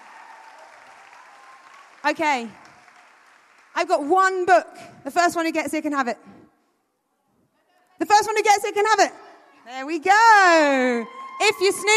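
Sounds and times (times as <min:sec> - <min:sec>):
audience clapping: 0:00.0 - 0:04.1
speech: 0:02.0 - 0:02.6, 0:03.8 - 0:06.4, 0:08.0 - 0:11.9.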